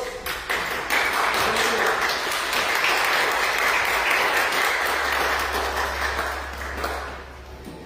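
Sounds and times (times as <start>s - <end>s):
audience applause: 0.0s - 7.3s.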